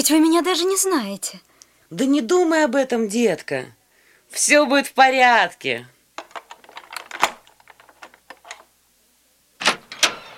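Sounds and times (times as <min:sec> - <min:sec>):
speech: 0:00.0 - 0:05.9
key rattling and scraping in a lock: 0:06.2 - 0:08.6.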